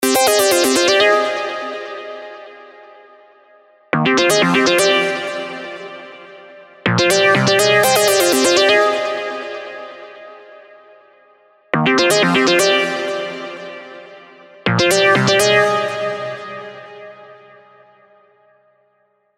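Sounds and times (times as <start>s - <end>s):
diva melodic synth leads: 0.0s - 2.0s, 4.0s - 10.1s, 11.8s - 17.6s.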